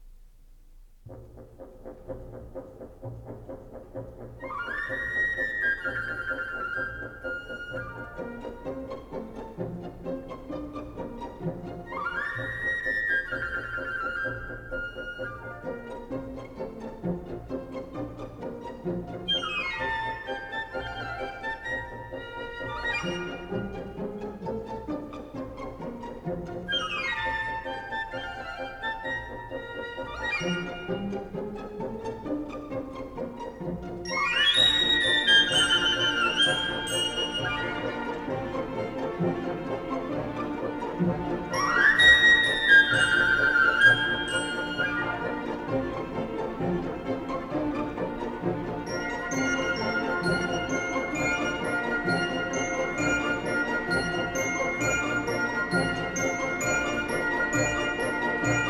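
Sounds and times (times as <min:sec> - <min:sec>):
orchestral dance piece: 0:00.0 - 0:58.6.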